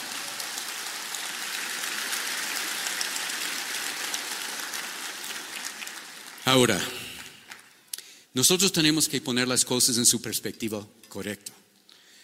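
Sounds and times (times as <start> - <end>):
audience applause: 0.0 - 7.8
speech: 6.5 - 7.0, 8.4 - 11.6.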